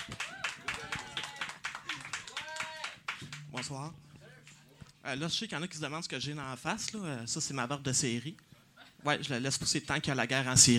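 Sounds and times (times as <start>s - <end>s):
audience clapping: 0.0s - 4.7s
speech: 3.6s - 4.0s, 5.0s - 10.7s.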